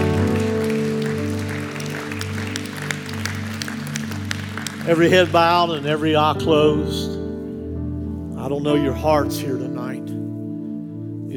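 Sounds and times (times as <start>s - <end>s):
audience clapping hands: 0.0s - 6.1s
speech: 4.9s - 7.2s, 8.4s - 10.2s.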